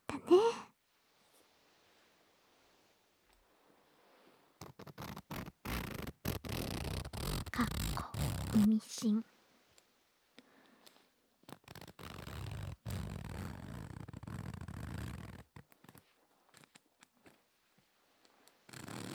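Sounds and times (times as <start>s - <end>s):
zipper sliding up and down: 4.6s - 8.9s, 11.4s - 19.1s
speech: 7.6s - 9.3s.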